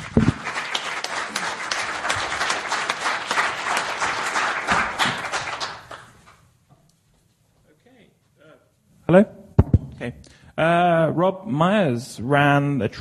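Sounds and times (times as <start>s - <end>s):
audience applause: 0.0s - 6.4s
speech: 9.1s - 9.3s, 10.2s - 12.9s.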